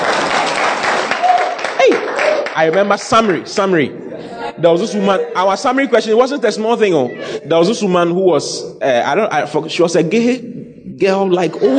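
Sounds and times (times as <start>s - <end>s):
clapping: 0.0s - 3.2s
speech: 2.6s - 11.7s
laughter: 3.9s - 8.0s, 11.3s - 11.7s.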